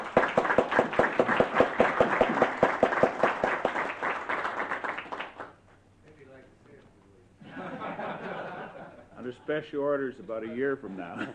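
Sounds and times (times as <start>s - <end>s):
applause: 0.0s - 5.6s
laughter: 7.4s - 9.5s, 10.2s - 11.3s
speech: 9.5s - 11.3s.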